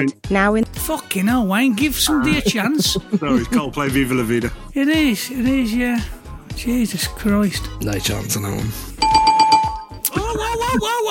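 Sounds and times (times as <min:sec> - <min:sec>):
speech: 0:00.0 - 0:09.0, 0:10.1 - 0:11.0
laughter: 0:02.0 - 0:04.4, 0:10.1 - 0:11.0
bell signalling end of quiz round: 0:09.0 - 0:10.1.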